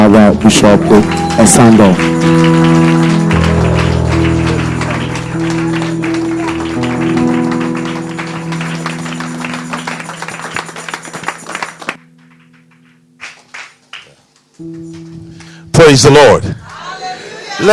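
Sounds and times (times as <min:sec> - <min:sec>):
loud sustained organ-like music: 0:00.0 - 0:13.9, 0:14.5 - 0:15.7
speech: 0:00.1 - 0:03.0, 0:15.9 - 0:16.6
audience applause, standing ovation: 0:00.1 - 0:12.0.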